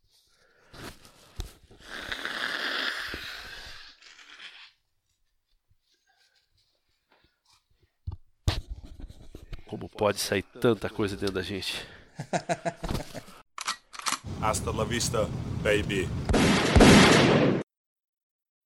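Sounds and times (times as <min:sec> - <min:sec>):
person blowing nose: 0:01.7 - 0:04.0
speech: 0:10.0 - 0:13.1, 0:14.4 - 0:17.5
laughter: 0:12.1 - 0:13.4.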